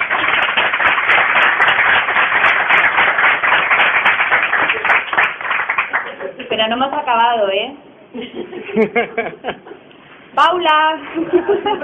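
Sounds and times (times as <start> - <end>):
crowd applause: 0.0 - 6.4
speech: 6.6 - 9.7, 10.4 - 11.8
laughter: 8.2 - 9.9, 11.2 - 11.8.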